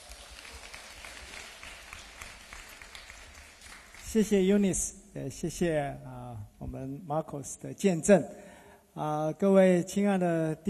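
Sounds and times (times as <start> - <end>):
audience applause: 0.0 - 4.2
speech: 4.1 - 10.6.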